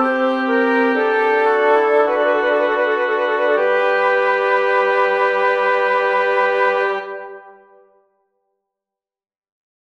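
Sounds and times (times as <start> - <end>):
woodwind trio: 0.0 - 7.8.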